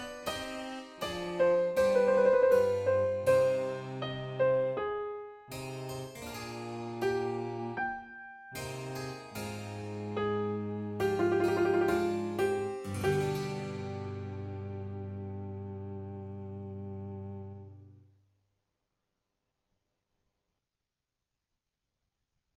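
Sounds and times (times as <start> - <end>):
slow orchestral piece at full tempo: 0.0 - 5.8, 6.4 - 18.0.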